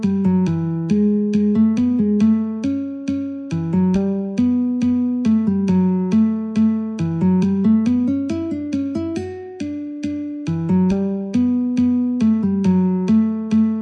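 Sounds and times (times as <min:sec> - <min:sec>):
guitar: 0:00.0 - 0:13.7
metronome at 69: 0:00.0 - 0:13.7.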